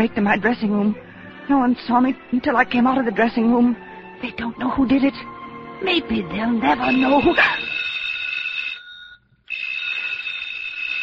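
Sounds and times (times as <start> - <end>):
speech: 0.0 - 7.8
telephone ringing with a shrill high-pitched tone: 6.6 - 11.0.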